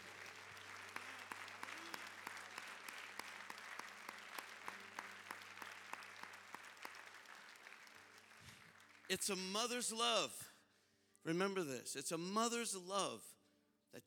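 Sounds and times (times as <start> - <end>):
round of applause: 0.0 - 10.2
speech: 9.1 - 10.5, 11.2 - 14.0.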